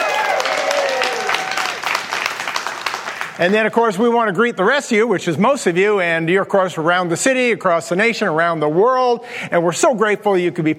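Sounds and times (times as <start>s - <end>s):
high voiced whoops: 0.0s - 1.8s
small group applause: 0.0s - 3.6s
speech: 3.4s - 10.7s.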